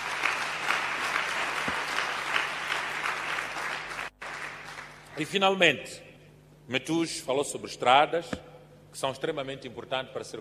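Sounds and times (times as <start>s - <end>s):
audience applause: 0.0s - 5.4s
speech: 5.2s - 6.0s, 6.7s - 10.3s.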